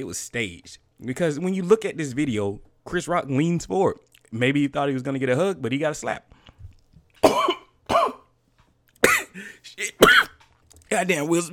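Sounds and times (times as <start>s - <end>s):
speech: 0.0s - 6.3s, 10.9s - 11.5s
person coughing and choking: 7.2s - 8.3s, 9.0s - 9.4s, 10.0s - 10.4s.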